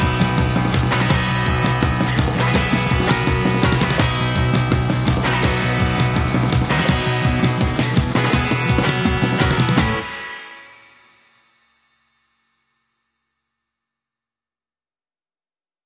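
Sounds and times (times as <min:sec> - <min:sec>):
guitar: 0:00.0 - 0:11.4.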